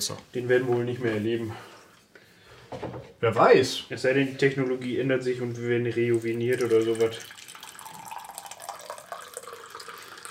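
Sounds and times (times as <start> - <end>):
speech: 0.0 - 1.7, 2.7 - 7.4
water poured while making coffee: 4.8 - 10.2.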